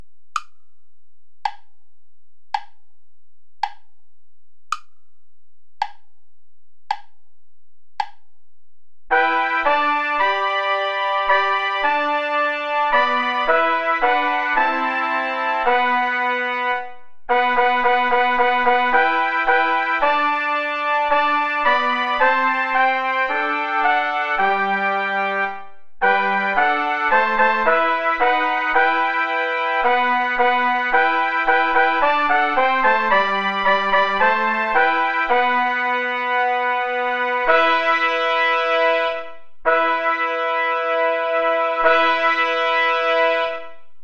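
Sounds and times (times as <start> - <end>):
play-along backing music without trumpet: 9.1 - 43.8.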